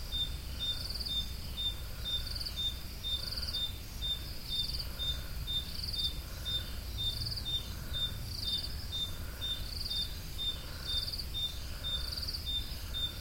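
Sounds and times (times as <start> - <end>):
crickets chirping at Roodekopjes: 0.0 - 13.2.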